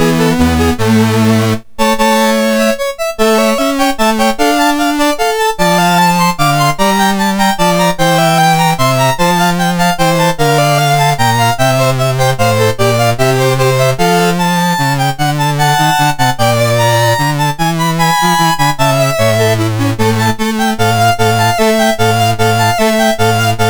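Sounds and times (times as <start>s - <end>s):
chiptune music on a MOS6581R4 sound chip: 0.0s - 23.6s.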